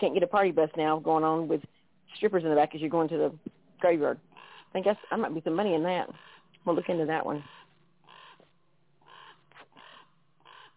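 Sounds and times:
speech: 0.0 - 7.6
ravens cawing: 4.3 - 5.2, 6.1 - 6.5, 7.4 - 10.7.

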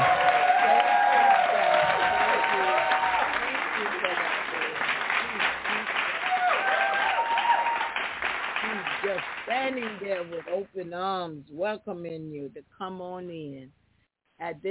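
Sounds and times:
hand clapping applause: 0.0 - 10.5
speech: 10.7 - 13.8, 14.4 - 14.7.

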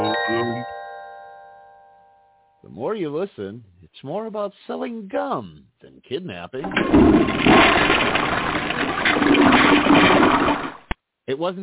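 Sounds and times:
speech: 2.8 - 10.2, 11.3 - 11.6
toilet flushing: 6.6 - 11.0.

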